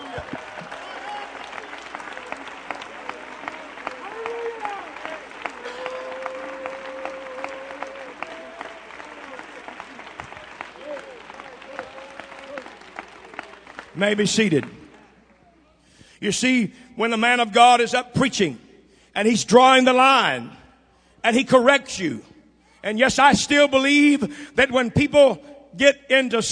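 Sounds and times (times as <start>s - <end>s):
audience hand clapping applause: 0.0s - 15.7s
speech: 14.0s - 14.8s, 16.2s - 18.6s, 19.2s - 20.6s, 21.2s - 26.4s.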